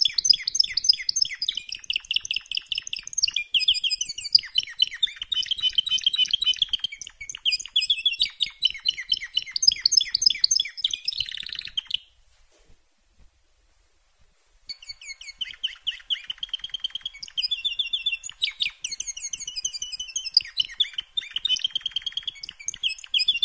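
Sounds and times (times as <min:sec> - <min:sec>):
canary song: 0:00.0 - 0:12.2, 0:14.6 - 0:23.4.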